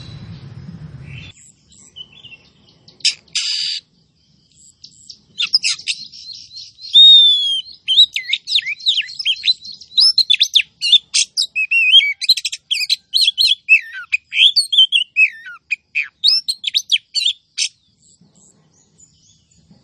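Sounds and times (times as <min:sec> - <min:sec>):
female Oriental magpie-robin calling: 0:00.0 - 0:19.8.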